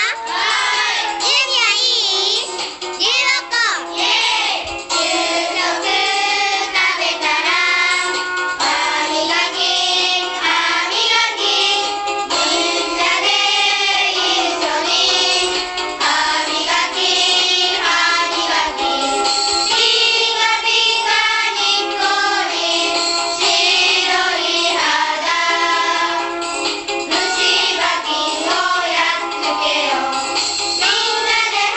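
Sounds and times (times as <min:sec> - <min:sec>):
song: 0:00.1 - 0:31.7.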